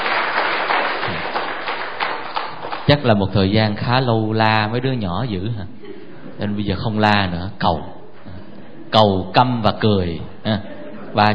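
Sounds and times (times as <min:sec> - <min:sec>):
congregation clapping for God and the Virgin Mary: 0:00.0 - 0:03.2
speech: 0:02.9 - 0:05.8, 0:06.4 - 0:08.0, 0:08.9 - 0:11.3
laughter: 0:05.7 - 0:06.5, 0:10.5 - 0:11.3.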